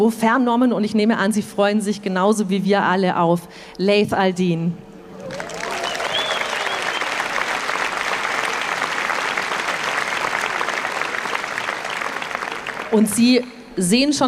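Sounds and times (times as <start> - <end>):
speech: 0.0 - 5.4, 12.9 - 14.2
audience applause: 5.2 - 13.1
faint whistle-like tones: 5.8 - 7.3.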